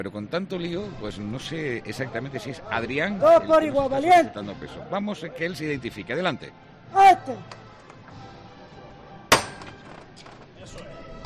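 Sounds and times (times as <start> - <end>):
speech: 0.0 - 7.6
processional float knocker from the old Jesús Nazareno float of Granada striking: 9.3 - 9.8.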